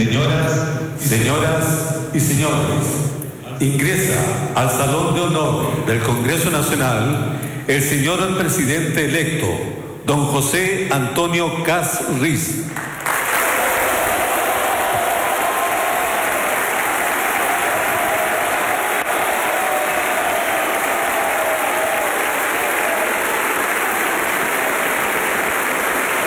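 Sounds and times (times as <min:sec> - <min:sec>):
speech: 0:00.0 - 0:03.0, 0:03.6 - 0:13.0
thunderous applause in the Salón de Honor: 0:12.8 - 0:26.2.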